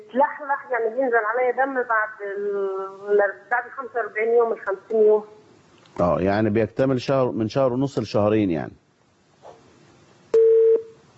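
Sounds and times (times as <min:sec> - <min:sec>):
speech: 0:00.1 - 0:05.4, 0:06.0 - 0:08.8
telephone busy tone after a call drops: 0:10.3 - 0:11.0.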